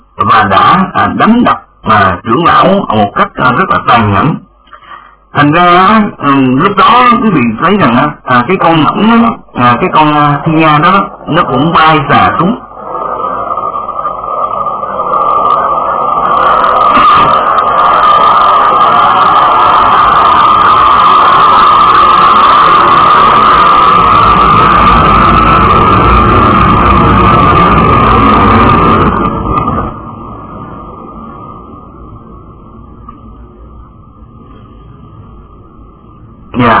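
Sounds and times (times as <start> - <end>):
speech: 0.2 - 4.5, 5.3 - 12.6
loud airplane passing overhead with a high whine: 12.4 - 33.6.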